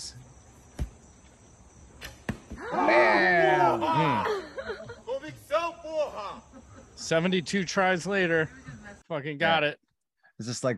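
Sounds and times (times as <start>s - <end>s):
arrow shot from a bow during a trick-shot attempt: 2.0s - 2.7s
laughter: 3.6s - 7.6s, 8.2s - 9.1s
speech: 7.0s - 9.8s, 10.4s - 10.7s.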